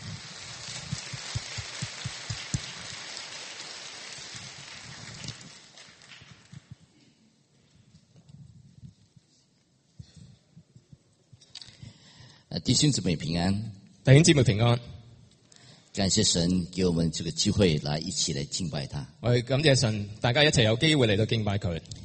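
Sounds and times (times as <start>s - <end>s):
audience applause: 0.0s - 6.6s
speech: 12.6s - 14.9s, 16.0s - 22.0s.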